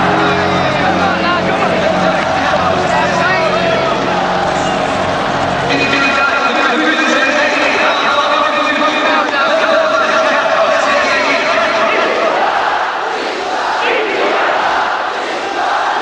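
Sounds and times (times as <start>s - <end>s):
large crowd roaring and shouting in unison: 0.0s - 16.0s.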